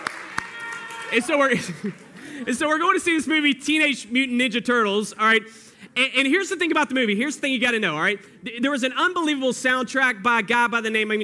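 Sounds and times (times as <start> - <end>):
audience hand clapping: 0.0 - 2.3
speech: 1.1 - 11.2
laughter: 1.3 - 2.8.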